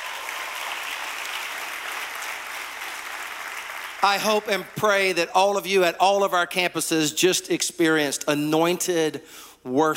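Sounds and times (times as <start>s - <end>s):
church congregation applause welcoming worshippers at several campuses: 0.0s - 5.1s
speech: 4.0s - 9.9s.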